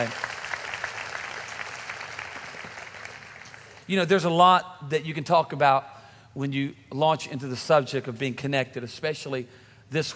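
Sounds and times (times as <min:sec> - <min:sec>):
speech: 0:00.0 - 0:00.2, 0:03.9 - 0:10.1
audience clapping hands: 0:00.0 - 0:03.9.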